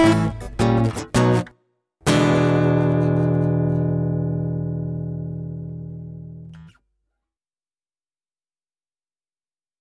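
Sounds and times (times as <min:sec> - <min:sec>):
steel guitar: 0:00.0 - 0:06.8.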